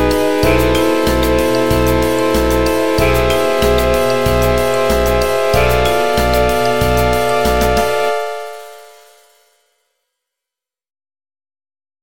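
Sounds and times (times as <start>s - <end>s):
final battle music: 0.0s - 9.3s.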